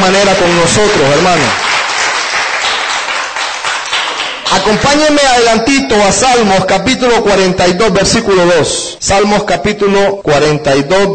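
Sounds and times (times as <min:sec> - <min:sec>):
church congregation clapping hands: 0:00.0 - 0:05.5
speech: 0:00.1 - 0:01.6, 0:04.5 - 0:11.1.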